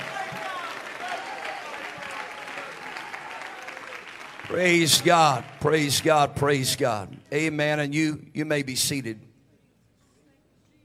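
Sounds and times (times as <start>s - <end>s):
large indoor crowd clapping: 0.0s - 7.6s
speech: 4.5s - 9.3s.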